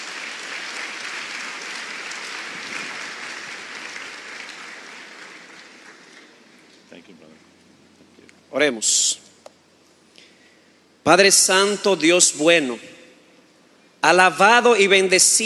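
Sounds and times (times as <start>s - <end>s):
audience applause: 0.0s - 6.4s
speech: 6.9s - 7.6s, 8.5s - 9.2s, 11.1s - 13.0s, 14.0s - 15.4s.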